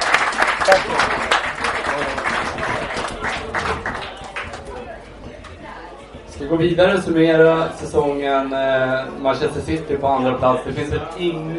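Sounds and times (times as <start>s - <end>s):
audience applause: 0.0s - 5.0s
speech: 0.7s - 1.1s, 6.5s - 11.5s.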